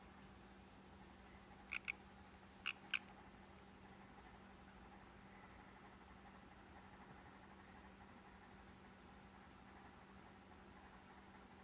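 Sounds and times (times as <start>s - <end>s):
steady low hum: 0.0s - 11.6s
green-and-black poison dart frog harsh chirps: 1.6s - 2.0s, 2.6s - 3.1s.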